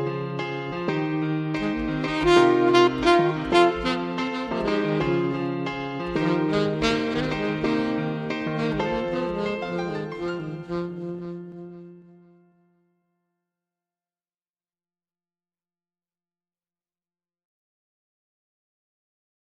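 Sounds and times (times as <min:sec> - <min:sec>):
groovy saxophone: 0:00.0 - 0:12.5.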